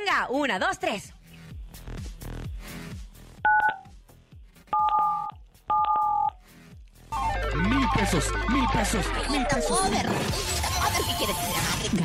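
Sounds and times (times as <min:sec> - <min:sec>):
speech: 0:00.2 - 0:01.2, 0:07.6 - 0:12.0
phone keypad tones: 0:03.5 - 0:03.8, 0:04.8 - 0:06.4.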